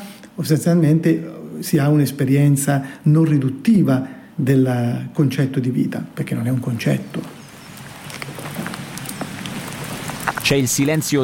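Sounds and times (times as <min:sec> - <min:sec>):
speech: 0:00.4 - 0:07.3, 0:10.5 - 0:11.2
water flowing in a small fountain: 0:07.3 - 0:11.2.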